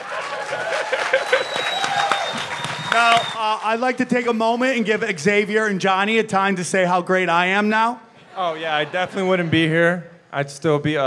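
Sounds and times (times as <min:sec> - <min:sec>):
audience clapping: 0:00.0 - 0:05.0
laughter: 0:00.1 - 0:02.0, 0:08.2 - 0:10.0
speech: 0:02.9 - 0:11.0.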